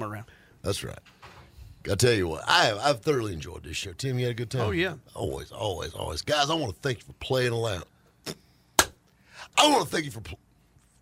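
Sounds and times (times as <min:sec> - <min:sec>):
speech: 0:00.2 - 0:01.2, 0:01.8 - 0:08.4, 0:09.6 - 0:10.4
hand clap: 0:08.8 - 0:09.0.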